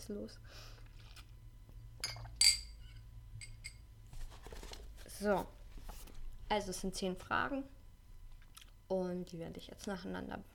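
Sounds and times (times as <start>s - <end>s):
speech: 0.0s - 0.8s, 5.2s - 5.6s, 6.5s - 7.8s, 8.9s - 10.5s
low hum: 0.0s - 10.5s
glass clinking: 2.0s - 3.8s.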